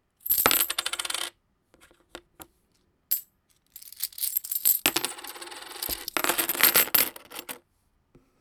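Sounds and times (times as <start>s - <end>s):
coin: 0.2s - 1.3s, 3.1s - 7.6s.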